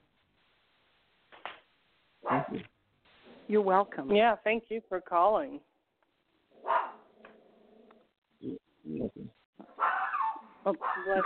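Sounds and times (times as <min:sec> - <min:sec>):
small dog barking: 0:02.2 - 0:02.6, 0:06.6 - 0:07.1, 0:09.6 - 0:11.2
speech: 0:02.4 - 0:02.8, 0:03.5 - 0:05.7, 0:10.6 - 0:11.2.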